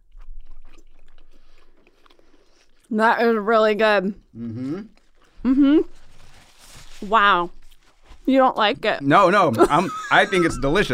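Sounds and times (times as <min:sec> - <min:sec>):
biting into crisp thin St. Louis style pizza crust: 0:00.0 - 0:02.9
speech: 0:02.9 - 0:06.0, 0:07.0 - 0:07.6, 0:08.3 - 0:10.9
laughter: 0:09.6 - 0:10.9.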